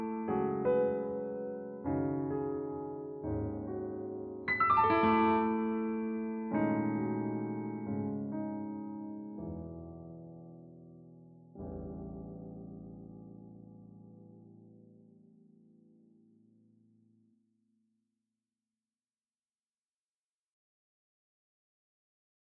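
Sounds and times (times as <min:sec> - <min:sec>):
solo piano improvisation: 0:00.0 - 0:16.2.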